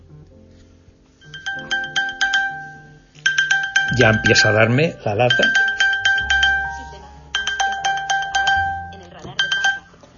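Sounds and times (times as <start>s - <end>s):
phone find-device alert chime tones: 1.2s - 10.0s
speech: 4.0s - 5.6s.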